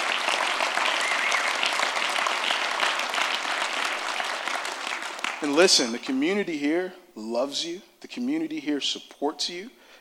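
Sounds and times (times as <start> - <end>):
audience clapping: 0.0 - 5.9
speech: 5.4 - 9.8.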